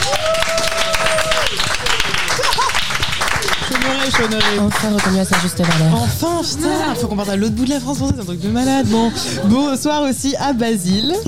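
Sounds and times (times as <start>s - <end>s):
audience applauding: 0.0s - 6.1s
laughter: 0.8s - 10.0s
speech: 4.2s - 11.2s.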